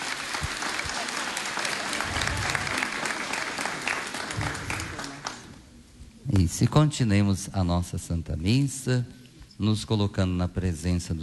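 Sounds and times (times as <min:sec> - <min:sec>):
round of applause: 0:00.0 - 0:05.6
speech: 0:06.4 - 0:11.2.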